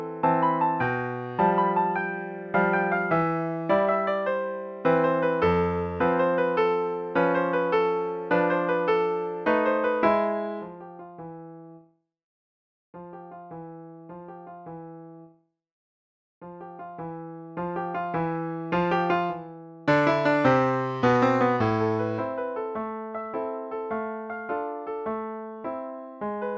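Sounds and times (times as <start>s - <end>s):
tarantella on piano: 0.0s - 11.3s, 16.7s - 26.5s.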